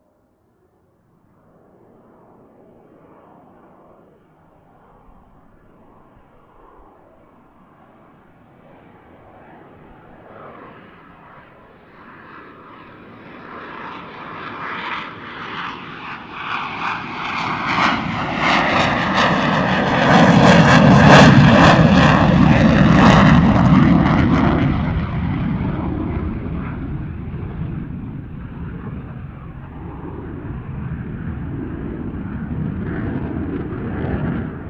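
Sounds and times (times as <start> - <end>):
FA-18 Hornet aircraft passing: 1.3 - 34.6.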